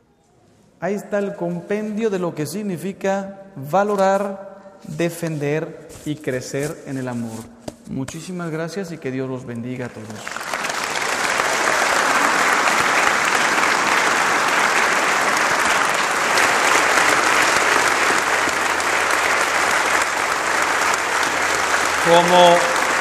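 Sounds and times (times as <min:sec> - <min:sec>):
speech: 0:00.8 - 0:10.4, 0:22.1 - 0:22.7
conference audience applause: 0:10.0 - 0:22.9.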